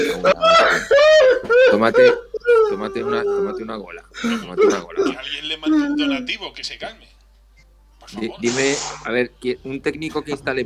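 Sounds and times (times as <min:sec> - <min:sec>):
man crying in a crowded room: 0:00.0 - 0:06.3
speech: 0:01.8 - 0:07.2, 0:08.1 - 0:10.6.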